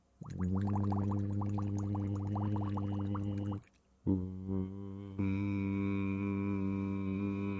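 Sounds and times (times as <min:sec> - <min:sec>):
hum voiced through a tube into water: 0:00.0 - 0:07.5
rapid bubbling in water: 0:00.2 - 0:03.7.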